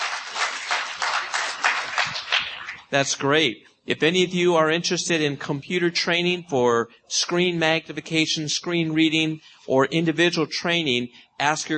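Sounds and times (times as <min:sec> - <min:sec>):
audience applause: 0:00.0 - 0:02.8
speech: 0:02.9 - 0:11.7.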